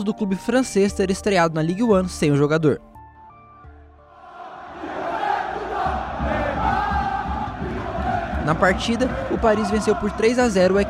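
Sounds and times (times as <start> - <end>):
speech: 0.0 - 2.9, 8.5 - 10.8
large stadium crowd chanting and jeering in unison: 4.1 - 10.8
rhythmic low thumps: 4.7 - 10.8.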